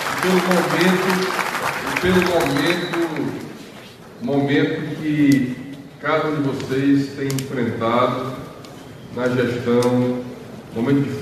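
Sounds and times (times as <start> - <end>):
crowd applause for Ceará's mayors at a political event: 0.0 - 3.6
speech: 0.2 - 1.4, 2.0 - 3.4, 4.2 - 8.3, 9.2 - 11.2.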